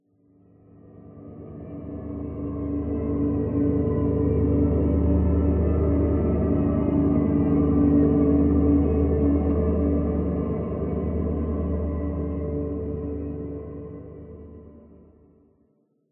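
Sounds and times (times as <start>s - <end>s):
library main synth pad: 1.0s - 15.0s.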